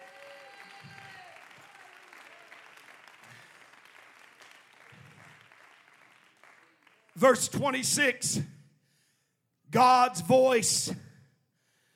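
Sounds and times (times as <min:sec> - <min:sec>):
audience clapping hands: 0:00.0 - 0:07.7
speech: 0:07.2 - 0:08.5, 0:09.7 - 0:11.0.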